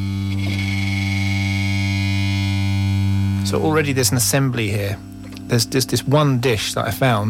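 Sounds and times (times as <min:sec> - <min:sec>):
can of nuts and bolts buzzing from vibration: 0:00.0 - 0:05.8
sustained low droning note: 0:00.0 - 0:06.9
speech: 0:03.5 - 0:07.2.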